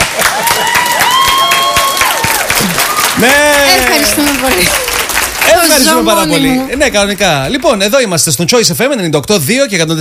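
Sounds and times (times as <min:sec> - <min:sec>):
applause: 0:00.0 - 0:06.6
speech: 0:03.2 - 0:03.4, 0:04.5 - 0:05.0, 0:05.6 - 0:09.9.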